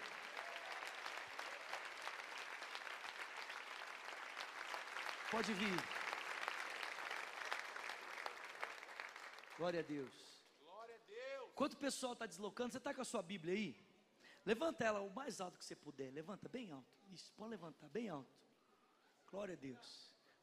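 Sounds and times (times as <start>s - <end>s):
audience applause: 0.0s - 10.1s
speech: 5.3s - 6.0s, 9.6s - 10.3s, 11.6s - 13.8s, 14.4s - 18.5s, 19.3s - 20.4s.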